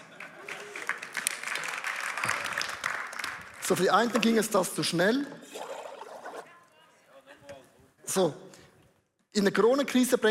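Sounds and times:
applause: 0.0s - 4.2s
speech: 3.7s - 5.4s, 8.2s - 8.5s, 9.4s - 10.2s.

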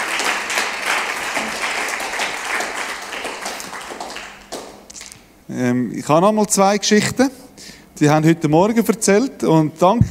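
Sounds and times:
audience applause: 0.0s - 4.8s
speech: 5.5s - 7.4s, 8.0s - 10.0s.

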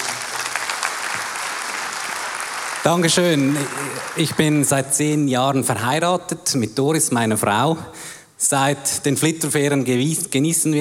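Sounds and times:
audience applause: 0.0s - 4.7s
speech: 2.8s - 10.7s.

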